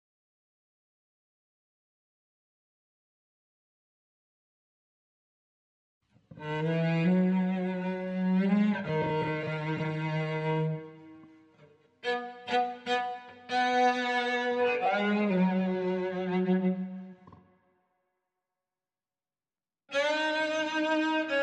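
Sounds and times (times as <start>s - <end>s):
cello: 6.3s - 17.5s, 19.9s - 21.4s.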